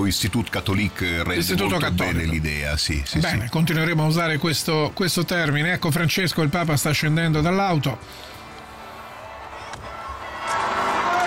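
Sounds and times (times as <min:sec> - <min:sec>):
speech: 0:00.0 - 0:08.4
crowd outside cheering in greeting: 0:08.8 - 0:11.2.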